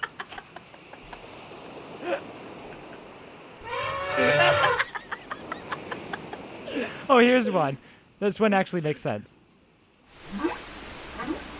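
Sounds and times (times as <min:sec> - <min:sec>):
laughter: 0:00.0 - 0:01.2, 0:04.2 - 0:06.9
humpback whale call: 0:03.6 - 0:04.8
speech: 0:07.2 - 0:09.4.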